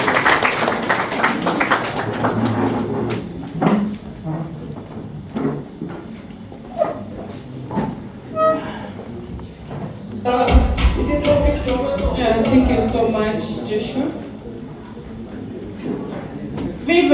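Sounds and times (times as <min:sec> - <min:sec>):
audience applause: 0:00.0 - 0:03.4
sharp crowd noises: 0:00.0 - 0:04.4, 0:06.6 - 0:17.1.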